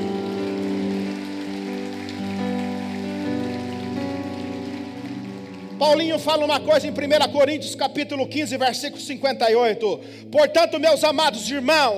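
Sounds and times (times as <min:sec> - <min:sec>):
audience applause: 0:00.0 - 0:06.7
speech: 0:05.8 - 0:11.9.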